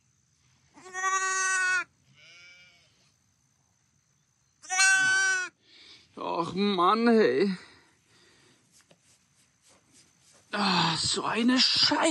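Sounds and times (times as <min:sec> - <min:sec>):
injured lamb bleating after an attack: 0:00.8 - 0:02.9, 0:04.6 - 0:05.5
speech: 0:06.4 - 0:07.7, 0:10.6 - 0:12.0.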